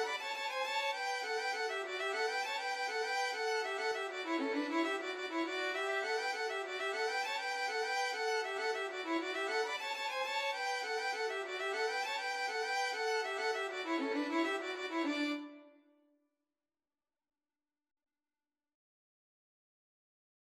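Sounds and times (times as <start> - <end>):
violin duet playing a reel: 0.0 - 15.6.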